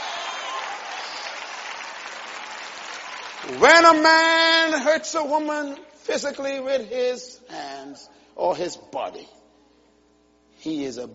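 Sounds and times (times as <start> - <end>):
crowd applauding: 0.0 - 4.4
speech: 3.4 - 9.4, 10.6 - 11.1.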